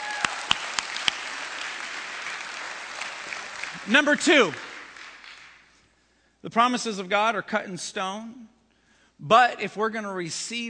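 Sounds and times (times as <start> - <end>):
audience applause: 0.0 - 5.7
speech: 3.8 - 4.6, 6.4 - 8.6, 9.2 - 10.6.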